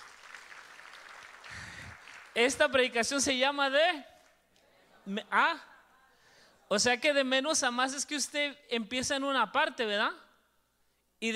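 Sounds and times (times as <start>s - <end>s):
audience applause: 0.0s - 2.4s
speech: 2.4s - 4.1s, 5.0s - 5.7s, 6.7s - 10.2s, 11.2s - 11.3s.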